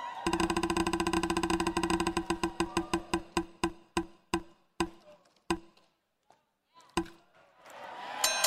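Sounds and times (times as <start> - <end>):
crowd noise: 0.0 - 3.8, 6.7 - 8.4
prize wheel spinning on a live comedy show: 0.3 - 5.8.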